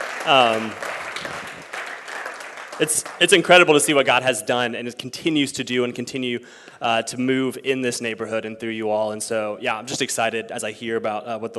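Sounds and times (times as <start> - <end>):
audience clapping: 0.0 - 4.2
speech: 0.2 - 1.4, 2.8 - 11.5.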